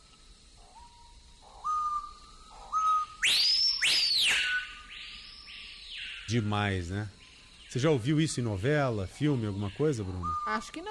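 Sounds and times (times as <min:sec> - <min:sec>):
screaming piha song: 0:00.0 - 0:10.8
speech: 0:06.3 - 0:10.8.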